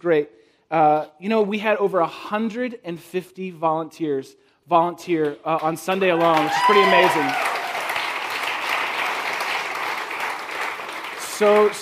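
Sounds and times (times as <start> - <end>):
speech: 0.0 - 7.6, 11.4 - 11.7
audience applause: 6.2 - 11.7.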